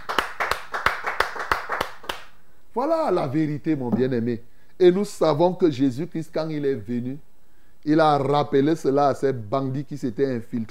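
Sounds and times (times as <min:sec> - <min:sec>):
church congregation clapping rhythmically during a prayer service: 0:00.0 - 0:02.4
speech: 0:02.8 - 0:10.6.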